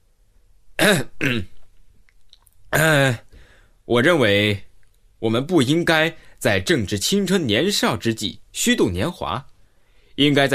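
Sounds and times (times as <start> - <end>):
speech: 0.8 - 1.6, 3.9 - 9.5, 10.2 - 10.5
young man clearing throat: 0.8 - 1.6, 2.8 - 3.2.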